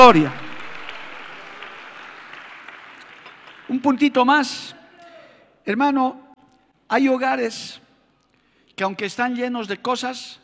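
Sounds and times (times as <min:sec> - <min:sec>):
church congregation applauding during a worship service: 0:00.0 - 0:05.0
speech: 0:00.1 - 0:00.4, 0:03.7 - 0:04.8, 0:05.6 - 0:06.2, 0:06.9 - 0:07.8, 0:08.8 - 0:10.4.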